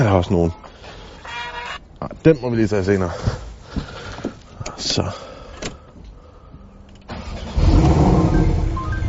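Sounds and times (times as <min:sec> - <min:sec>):
speech: 0:00.0 - 0:01.0, 0:02.0 - 0:03.9, 0:04.8 - 0:05.3
Porsche 718 Boxster engine starting and idling: 0:06.9 - 0:09.0.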